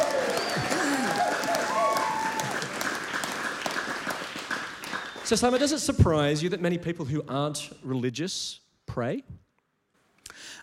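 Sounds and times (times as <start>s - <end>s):
whoops and voices: 0.0s - 2.7s
audience applause: 0.0s - 5.8s
speech: 5.3s - 9.4s.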